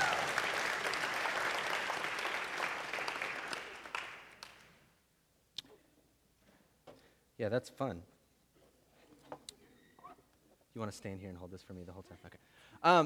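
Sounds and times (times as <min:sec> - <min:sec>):
audience applause at a church service after a scripture reading: 0:00.0 - 0:04.7
speech: 0:07.4 - 0:08.2, 0:10.8 - 0:13.0.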